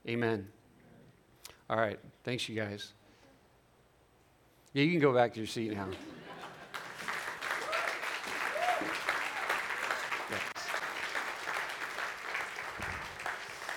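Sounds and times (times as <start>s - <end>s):
speech: 0.1s - 0.6s, 1.7s - 3.0s, 4.7s - 6.2s
audience applause: 6.3s - 13.7s.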